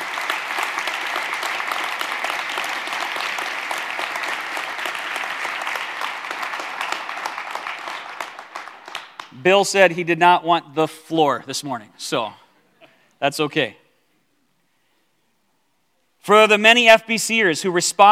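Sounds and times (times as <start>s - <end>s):
audience applause: 0.0s - 9.3s
speech: 9.4s - 12.4s, 13.2s - 13.8s, 16.2s - 18.0s.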